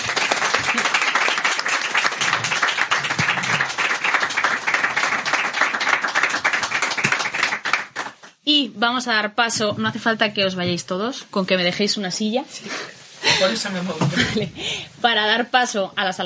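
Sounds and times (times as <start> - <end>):
audience applause: 0.0 - 8.3
speech: 8.6 - 16.2.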